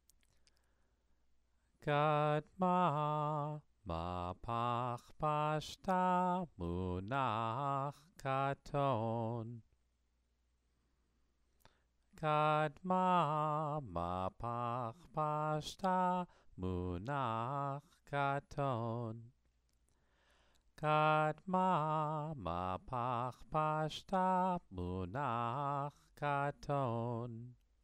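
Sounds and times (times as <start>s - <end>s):
person chanting scripture: 1.8s - 9.6s, 12.2s - 19.3s, 20.8s - 27.5s.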